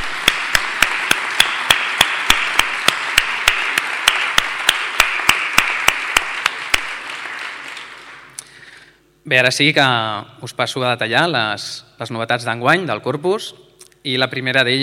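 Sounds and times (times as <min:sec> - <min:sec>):
audience clapping in rhythmic unison: 0:00.0 - 0:09.0
speech: 0:09.3 - 0:14.8.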